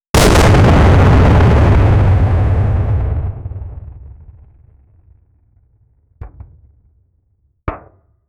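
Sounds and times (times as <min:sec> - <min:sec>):
large ship cannon firing: 0:00.2 - 0:07.9.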